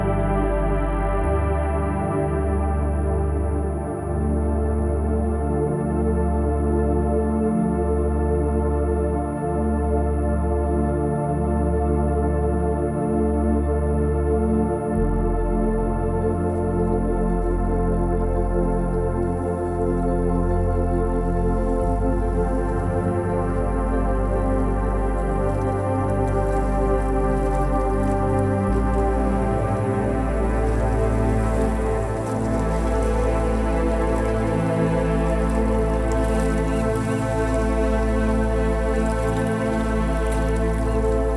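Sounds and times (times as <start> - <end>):
meditative ambient music: 0.0 - 41.3.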